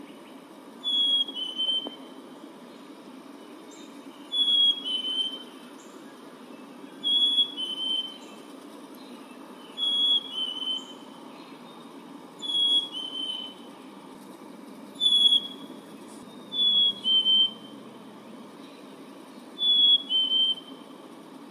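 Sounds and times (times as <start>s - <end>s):
Black-capped chickadee calling: 0.0s - 2.2s, 4.2s - 5.9s, 7.0s - 8.3s, 9.6s - 11.6s, 12.4s - 13.7s, 15.0s - 17.9s, 19.4s - 21.0s.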